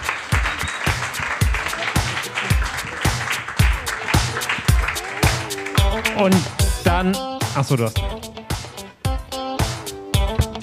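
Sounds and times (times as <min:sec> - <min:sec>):
audience applause: 0:00.0 - 0:06.6
regular low thumps: 0:00.0 - 0:10.6
speech: 0:06.2 - 0:08.4.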